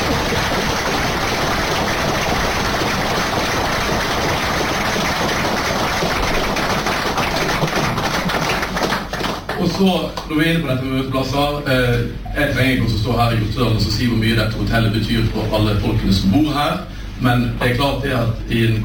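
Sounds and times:
applause: 0.0s - 10.3s
speech: 9.8s - 18.8s.

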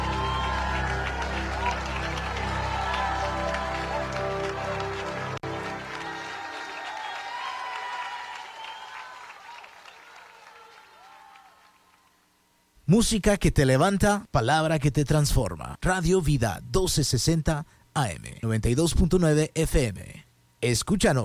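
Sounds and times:
low droning musical tone: 0.0s - 6.8s
audience applause: 0.0s - 12.2s
speech: 12.9s - 21.2s.

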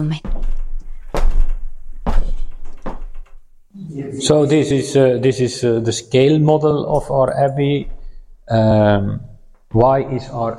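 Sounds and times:
speech: 0.0s - 0.3s, 4.2s - 10.5s
heavy wooden abbey door opening: 0.2s - 3.5s.

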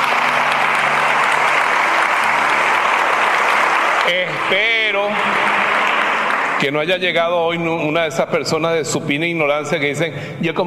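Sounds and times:
audience applause: 0.0s - 7.2s
speech: 4.1s - 5.1s, 6.6s - 10.6s.

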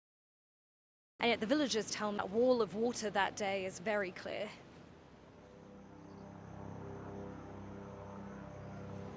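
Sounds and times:
speech: 1.2s - 4.7s
helicopter approaching: 5.5s - 9.1s.

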